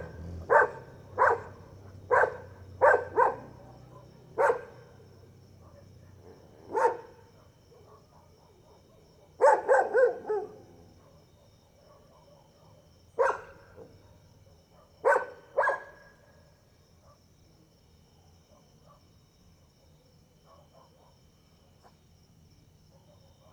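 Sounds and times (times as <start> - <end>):
dogs barking at night: 0.0 - 16.4, 18.5 - 19.1, 20.4 - 21.3, 22.9 - 23.5.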